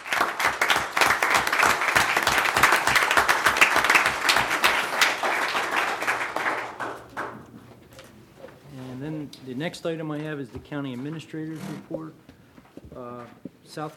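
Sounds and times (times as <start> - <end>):
audience applause: 0.0 - 7.4
speech: 9.6 - 12.3, 13.0 - 13.9.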